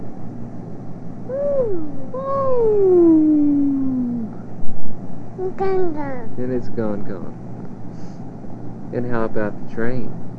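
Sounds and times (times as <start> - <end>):
low hum: 0.0 - 10.3
voice imitating a fire truck siren: 1.3 - 4.4
speech: 1.7 - 3.0, 5.5 - 7.5, 8.9 - 10.2.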